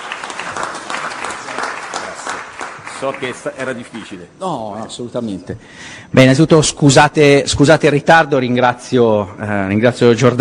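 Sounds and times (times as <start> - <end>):
audience applause thanking a senator at an Italian public event: 0.0 - 4.1
speech: 3.0 - 10.3.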